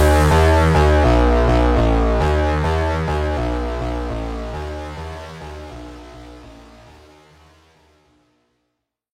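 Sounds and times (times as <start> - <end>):
Brazilian phonk music: 0.0 - 6.8.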